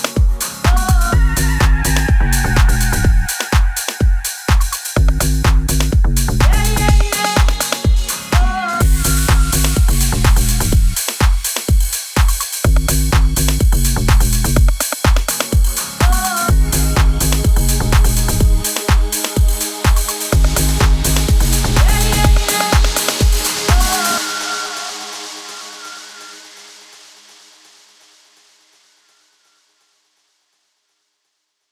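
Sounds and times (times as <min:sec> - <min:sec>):
music mix: 0:00.0 - 0:28.6.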